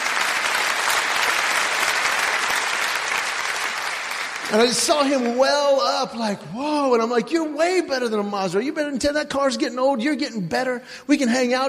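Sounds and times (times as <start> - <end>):
audience applause: 0.0 - 5.8
speech: 4.5 - 11.6.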